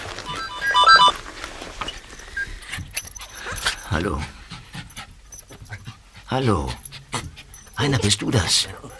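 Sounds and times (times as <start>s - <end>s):
telephone ringing in a car: 0.3s - 1.3s
speech: 3.9s - 4.4s, 6.3s - 6.8s, 7.8s - 8.9s.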